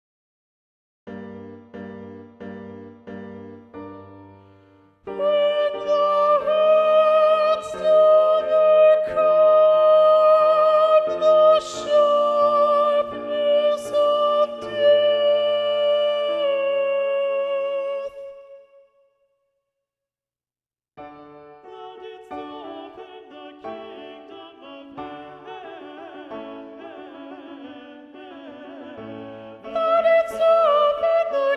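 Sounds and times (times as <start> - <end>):
soprano singing: 5.0 - 19.1, 21.2 - 31.5.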